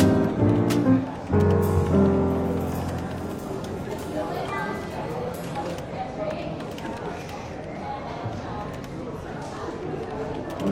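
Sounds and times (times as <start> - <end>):
gentle jazz music: 0.0 - 5.3
murmur of overlapping voices in a London bookshop café: 0.0 - 10.7.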